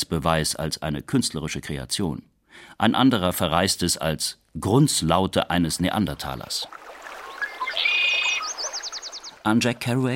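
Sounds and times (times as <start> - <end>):
speech: 0.0 - 6.8, 9.4 - 10.1
blue jays chirping: 7.2 - 9.5.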